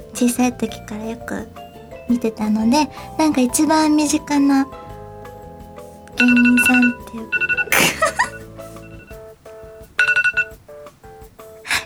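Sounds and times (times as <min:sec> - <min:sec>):
speech: 0:00.2 - 0:04.8, 0:06.2 - 0:08.3
timer alarm ringing: 0:06.2 - 0:08.5.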